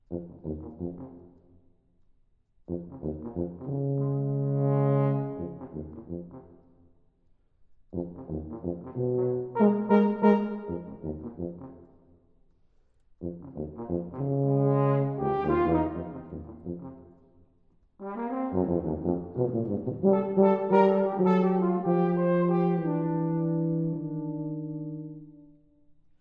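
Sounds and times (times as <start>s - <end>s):
tuba playing: 0.1s - 1.4s, 2.7s - 6.6s, 7.9s - 11.9s, 13.2s - 17.2s, 18.0s - 25.7s
horn playing: 3.7s - 6.4s, 8.2s - 11.7s, 13.7s - 17.0s, 18.0s - 25.4s.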